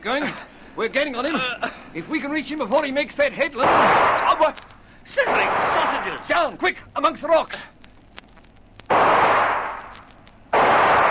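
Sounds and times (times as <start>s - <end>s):
speech: 0.0s - 7.7s
gunshots: 3.6s - 4.6s, 5.2s - 6.4s, 8.9s - 11.0s.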